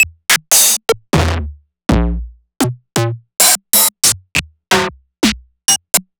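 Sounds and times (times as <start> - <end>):
Roland MV8800 drum machine hard kit beat: 0.0 - 6.1.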